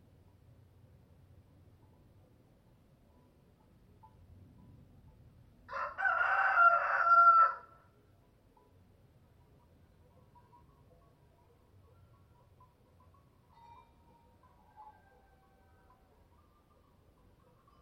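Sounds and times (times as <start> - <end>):
rooster crowing cock-a-doodle-doo: 5.7 - 7.8, 14.4 - 16.2.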